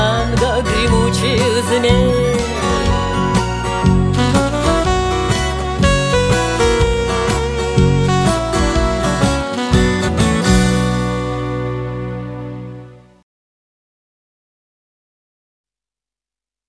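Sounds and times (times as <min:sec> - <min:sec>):
tango music: 0:00.0 - 0:13.1.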